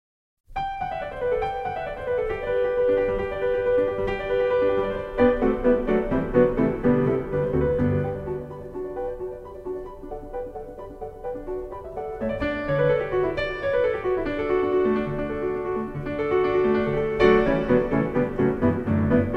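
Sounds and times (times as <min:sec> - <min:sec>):
piano toccata: 0:00.5 - 0:19.3.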